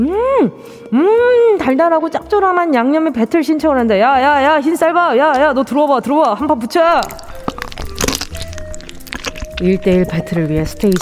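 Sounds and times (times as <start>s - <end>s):
speech: 0.0s - 7.3s, 9.6s - 11.0s
crab shell being cracked in half: 6.8s - 11.0s.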